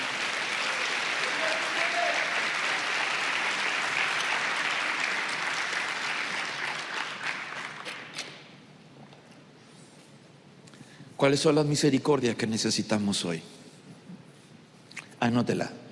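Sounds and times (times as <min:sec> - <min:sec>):
audience clapping and applauding: 0:00.0 - 0:08.2
speech: 0:11.2 - 0:13.6, 0:15.3 - 0:15.8.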